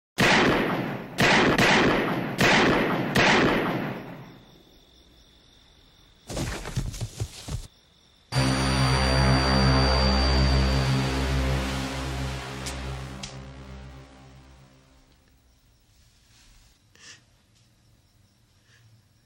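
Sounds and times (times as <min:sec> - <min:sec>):
gunshots fired repeatedly in film: 0:00.2 - 0:04.3
low droning tone: 0:08.3 - 0:15.4.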